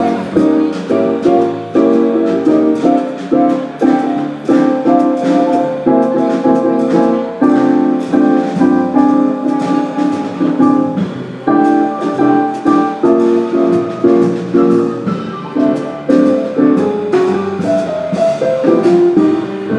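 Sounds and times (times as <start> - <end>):
jazz music: 0.0 - 19.7.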